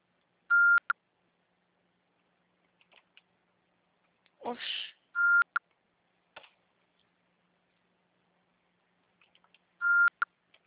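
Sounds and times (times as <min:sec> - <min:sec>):
voicemail beep on a Brazilian phone line: 0:00.5 - 0:01.0, 0:05.2 - 0:05.6, 0:09.8 - 0:10.3
speech: 0:04.5 - 0:04.8.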